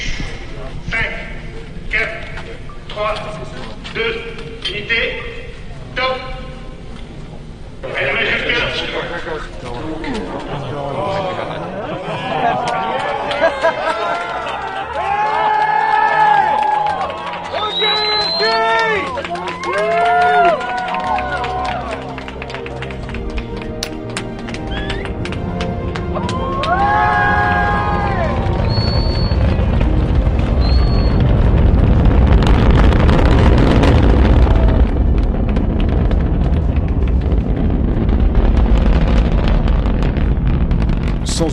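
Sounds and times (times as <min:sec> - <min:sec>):
speech: 0:03.0 - 0:05.4
Ariane 5 rocket liftoff roar: 0:03.3 - 0:41.5
laughter: 0:10.1 - 0:15.4
crowd applauding: 0:11.2 - 0:39.5.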